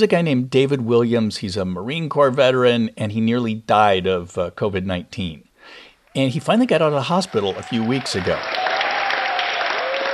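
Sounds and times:
speech: 0:00.0 - 0:08.8
hospital staff applauding a departing patient: 0:06.1 - 0:10.1
person cheering: 0:06.1 - 0:10.1.

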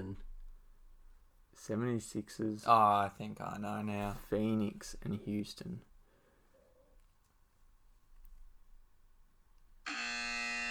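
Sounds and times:
speech: 0:01.6 - 0:05.9
game show buzzer: 0:09.8 - 0:10.7.

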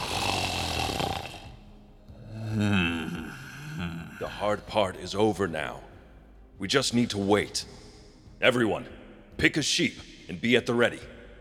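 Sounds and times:
drunken giant snoring in his sleep: 0:00.0 - 0:04.2
speech: 0:04.3 - 0:05.9, 0:06.6 - 0:07.8, 0:08.4 - 0:11.1.

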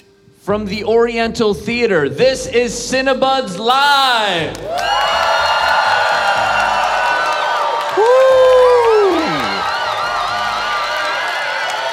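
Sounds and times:
speech: 0:00.5 - 0:05.3
live audience cheering and whooping: 0:03.8 - 0:11.9.

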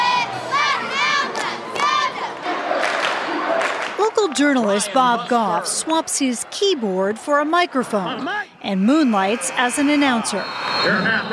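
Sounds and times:
large crowd cheering at high school football game: 0:00.0 - 0:11.3
speech: 0:04.4 - 0:11.3.

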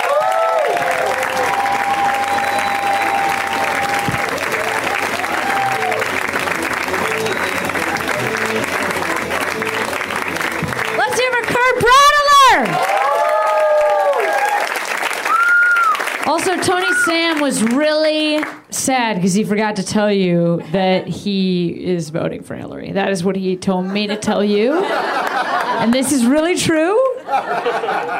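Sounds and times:
audience applause: 0:00.0 - 0:18.5, 0:25.1 - 0:26.0
laughter: 0:01.4 - 0:10.9, 0:23.8 - 0:26.3, 0:27.1 - 0:28.1
speech: 0:17.5 - 0:25.1, 0:25.8 - 0:28.1.

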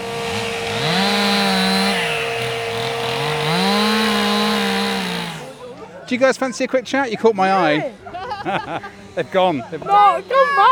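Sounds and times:
chainsaw carving wooden animals: 0:00.0 - 0:05.8
laughter: 0:05.0 - 0:10.6
speech: 0:06.1 - 0:10.7.

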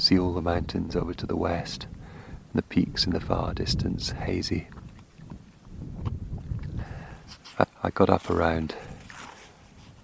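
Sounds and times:
speech: 0:00.1 - 0:04.8, 0:07.6 - 0:08.9
morning breeze on a mountainside: 0:06.5 - 0:10.0.

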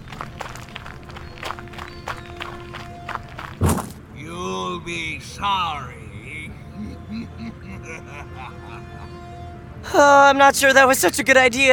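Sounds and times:
hurried footsteps of people running away: 0:00.0 - 0:04.0
heavy thump: 0:03.6 - 0:04.0
speech: 0:04.8 - 0:06.0, 0:09.9 - 0:11.7
laughter: 0:06.1 - 0:09.4.

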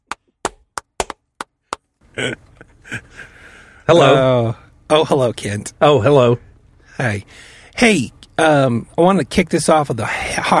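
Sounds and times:
hand claps: 0:00.0 - 0:01.9
speech: 0:02.2 - 0:03.3, 0:03.9 - 0:10.5
breathy noise burst: 0:03.0 - 0:03.9, 0:06.8 - 0:07.8.

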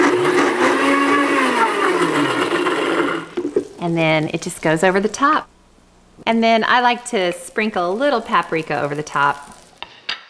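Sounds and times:
blender pulsing hollandaise sauce: 0:00.0 - 0:03.7
speech: 0:03.9 - 0:05.5, 0:06.2 - 0:09.5.

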